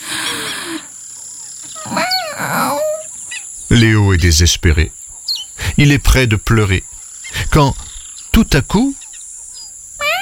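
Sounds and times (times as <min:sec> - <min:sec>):
lion cub attempting a roar: 0:01.8 - 0:03.1, 0:10.0 - 0:10.2
speech: 0:03.7 - 0:05.0, 0:05.8 - 0:07.8, 0:08.4 - 0:09.0.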